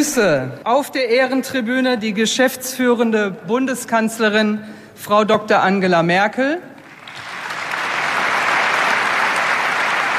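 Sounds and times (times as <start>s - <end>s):
speech: 0.0s - 6.7s
applause in Berlin at the close of Angela Merkel's time as chancellor: 6.8s - 10.1s.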